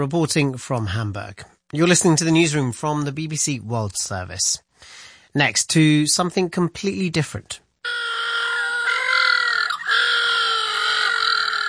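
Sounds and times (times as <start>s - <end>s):
speech: 0.0s - 8.0s
little blue penguins calling: 7.9s - 11.6s.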